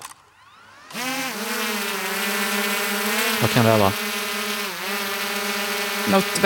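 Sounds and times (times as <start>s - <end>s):
drone motors buzzing while hovering: 0.0s - 6.4s
speech: 3.4s - 4.0s, 6.1s - 6.4s.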